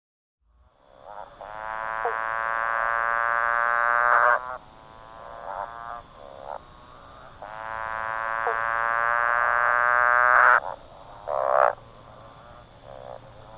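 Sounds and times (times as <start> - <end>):
motorbike frog call with soft notes, a long droning note and sharp bursts: 0.6 - 13.5.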